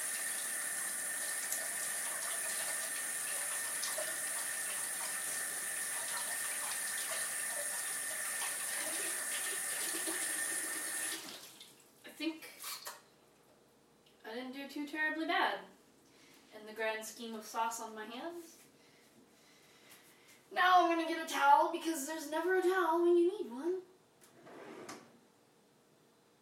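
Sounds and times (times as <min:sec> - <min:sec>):
water running fast from sink tap: 0:00.0 - 0:11.8
speech: 0:14.7 - 0:15.7, 0:16.6 - 0:18.5, 0:20.8 - 0:23.7.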